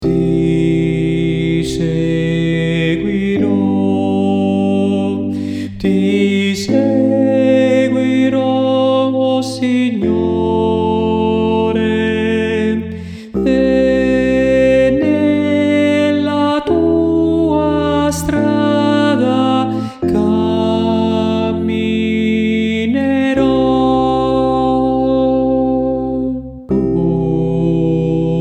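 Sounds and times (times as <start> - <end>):
sopranos singing: 0.0 - 28.4.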